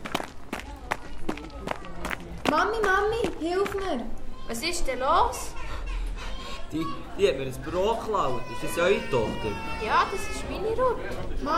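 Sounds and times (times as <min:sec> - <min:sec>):
girl's quick footsteps running in front of a bakery: 0:00.0 - 0:04.1
speech: 0:02.5 - 0:05.6, 0:06.7 - 0:11.5.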